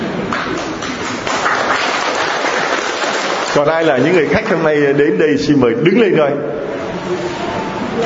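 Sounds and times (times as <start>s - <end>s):
guests at a church gathering applauding: 0.3s - 4.1s
speech: 3.6s - 8.0s.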